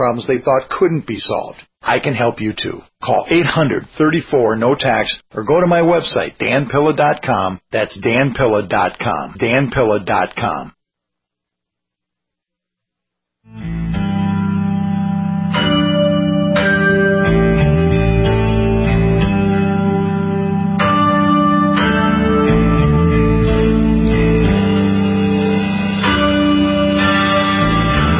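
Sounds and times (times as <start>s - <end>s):
speech: 0.0s - 10.8s, 13.5s - 14.0s
rock guitar music with chorus effects chiming like church bells: 13.5s - 28.1s.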